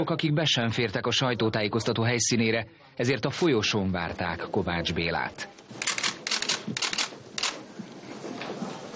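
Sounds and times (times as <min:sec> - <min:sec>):
speech: 0:00.0 - 0:05.9, 0:06.6 - 0:06.9
camera shutters clicking at a press conference: 0:05.8 - 0:07.6.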